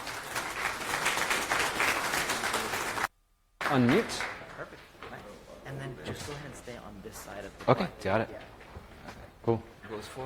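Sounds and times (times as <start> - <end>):
audience applause: 0.0 - 4.8
speech: 3.7 - 4.3, 5.8 - 10.2.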